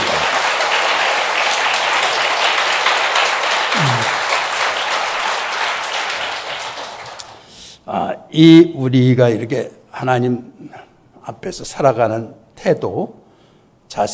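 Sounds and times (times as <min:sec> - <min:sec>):
audience applause: 0:00.0 - 0:07.4
speech: 0:08.4 - 0:13.2, 0:13.9 - 0:14.1.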